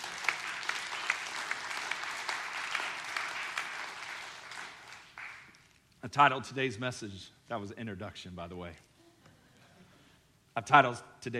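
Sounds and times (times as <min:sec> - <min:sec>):
audience clapping: 0:00.0 - 0:05.8
speech: 0:06.0 - 0:08.9, 0:10.6 - 0:11.3.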